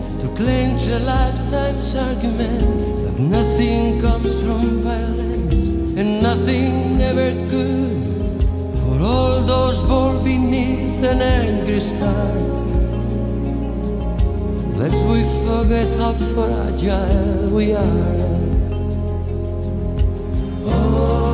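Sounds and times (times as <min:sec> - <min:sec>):
background vocals: 0:00.0 - 0:21.3
lead guitar: 0:00.0 - 0:21.3.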